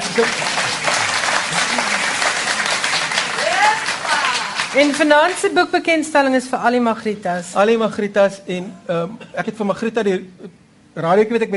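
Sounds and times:
hands clapping: 0.0s - 5.5s
speech: 0.2s - 0.5s, 4.8s - 11.5s.

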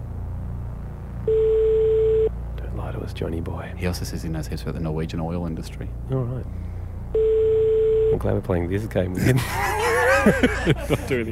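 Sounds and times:
faint low rumble: 0.0s - 11.3s
Norwegian telephone ringing tone: 1.3s - 2.3s, 7.2s - 8.2s
speech: 3.1s - 7.3s, 8.2s - 11.3s
laughter: 9.1s - 11.3s.

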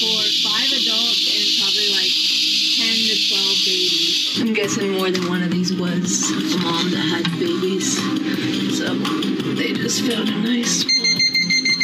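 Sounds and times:
busy voices: 0.0s - 2.2s, 2.8s - 11.4s
snake detector electronic alarm beeps: 0.0s - 4.4s, 10.8s - 11.8s
speech: 4.4s - 11.0s.

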